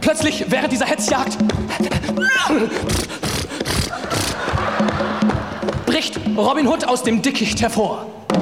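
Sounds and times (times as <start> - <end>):
speech: 0.1 - 3.2, 5.9 - 8.2
coach horse whinnying: 2.2 - 4.6
laughter: 2.5 - 6.1.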